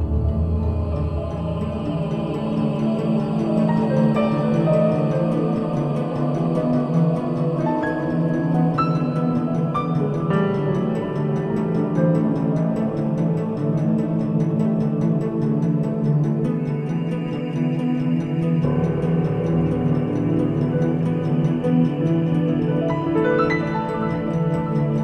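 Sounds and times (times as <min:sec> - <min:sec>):
music: 0:00.0 - 0:25.0.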